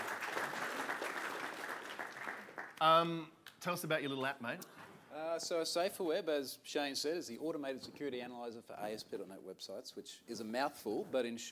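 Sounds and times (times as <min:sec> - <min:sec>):
audience applause: 0:00.0 - 0:02.8
speech: 0:02.8 - 0:11.5.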